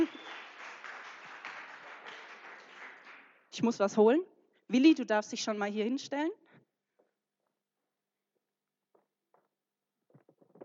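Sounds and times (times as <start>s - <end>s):
audience applause: 0.0s - 3.4s
speech: 3.6s - 6.4s.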